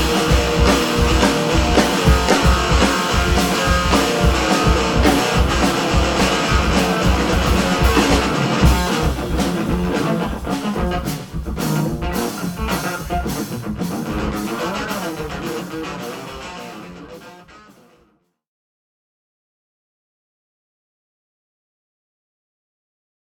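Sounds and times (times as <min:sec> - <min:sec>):
blues music: 0:00.0 - 0:18.0.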